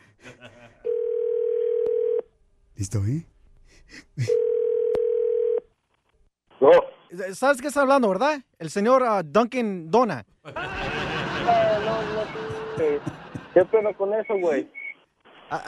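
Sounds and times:
laughter: 0.0s - 0.9s, 10.4s - 14.2s
telephone dial tone and dialing: 0.9s - 2.3s, 4.3s - 5.6s
speech: 2.8s - 4.4s, 6.6s - 11.6s, 12.3s - 14.8s.

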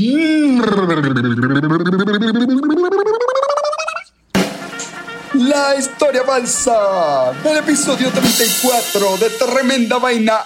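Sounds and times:
speech: 0.0s - 3.1s, 5.6s - 10.4s
voice imitating a snare drum roll: 4.4s - 10.4s.

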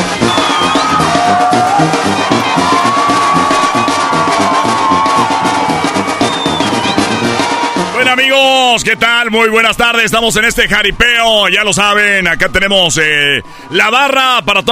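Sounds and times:
crowd cheering at a jaripeo rodeo in Pichátaro: 0.0s - 14.7s
crowd whistles: 0.2s - 1.4s, 5.1s - 7.2s
speech: 8.3s - 14.7s.

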